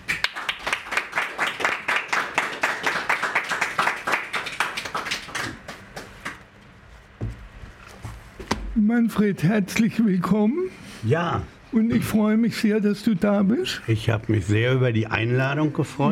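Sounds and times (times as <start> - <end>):
audience applause: 0.0 - 6.4
speech: 8.9 - 16.1.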